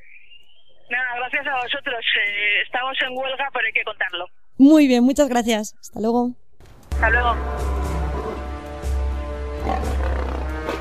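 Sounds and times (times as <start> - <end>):
speech: 0.9 - 6.4, 7.0 - 7.8
lions roaring: 7.8 - 8.7, 9.5 - 10.7.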